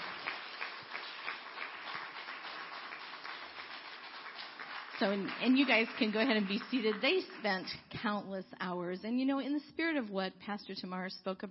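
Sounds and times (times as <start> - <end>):
crowd applause: 0.0 - 7.7
speech: 5.0 - 11.4.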